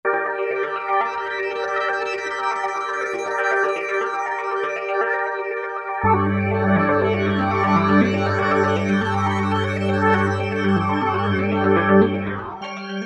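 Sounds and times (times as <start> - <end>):
Roland V-Synth synthesizer: 0.0 - 13.0.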